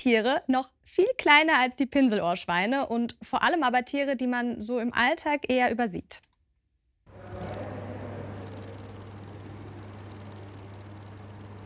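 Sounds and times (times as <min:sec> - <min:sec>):
speech: 0:00.0 - 0:06.3
cricket chirping: 0:07.2 - 0:11.6.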